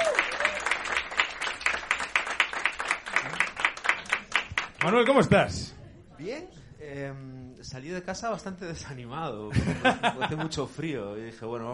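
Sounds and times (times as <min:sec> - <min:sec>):
audience applause: 0:00.0 - 0:05.4
speech: 0:04.8 - 0:11.7
laughter: 0:09.5 - 0:10.7.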